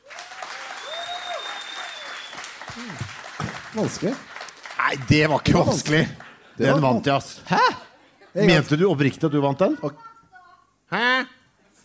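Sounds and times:
audience clapping: 0:00.0 - 0:06.6
faint whistle-like tones: 0:00.8 - 0:02.6
speech: 0:02.8 - 0:04.3, 0:04.9 - 0:07.8, 0:08.4 - 0:10.0.

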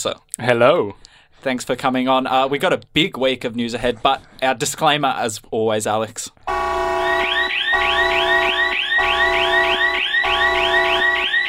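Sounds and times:
speech: 0:00.0 - 0:06.6
warning siren sound effect: 0:06.5 - 0:11.4.

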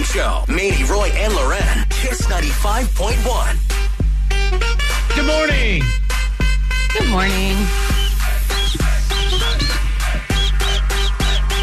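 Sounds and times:
loud bass-heavy music bed: 0:00.0 - 0:11.6
speech: 0:00.1 - 0:03.8, 0:04.5 - 0:06.1, 0:06.9 - 0:08.0
person whistling short bright melody: 0:07.2 - 0:11.6.

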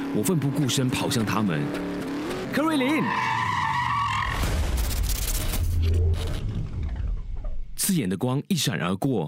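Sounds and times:
sports car tires screeching in a skid: 0:00.0 - 0:07.1
speech: 0:00.1 - 0:03.4, 0:07.9 - 0:09.2.

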